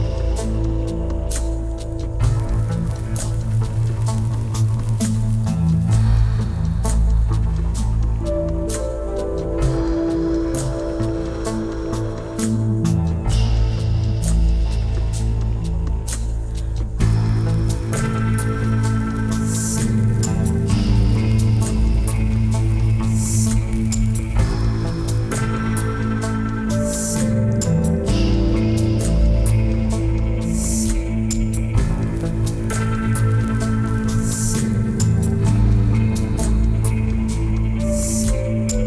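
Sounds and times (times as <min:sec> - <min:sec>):
ambient soundscape: 0:00.0 - 0:38.8.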